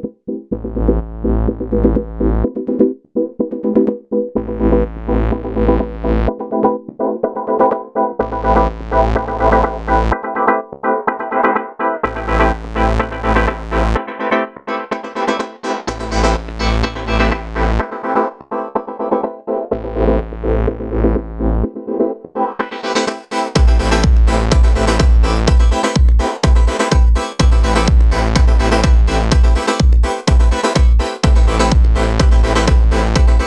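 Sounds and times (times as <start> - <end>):
techno synths in live performance: 0.5 - 3.0, 3.6 - 14.4, 15.0 - 33.4
drums in live techno performance: 23.6 - 33.4.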